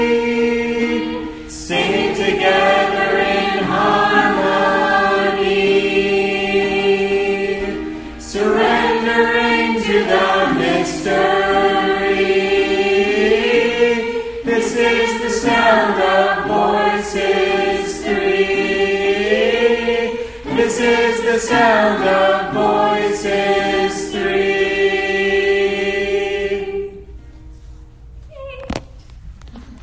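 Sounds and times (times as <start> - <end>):
one voice singing three harmonies: 0.0 - 27.2.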